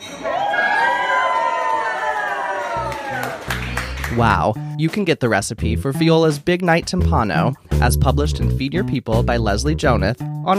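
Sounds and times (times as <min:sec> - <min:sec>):
crowd reacting at the big reveal of a dish: 0:00.0 - 0:04.3
speech: 0:04.1 - 0:10.5.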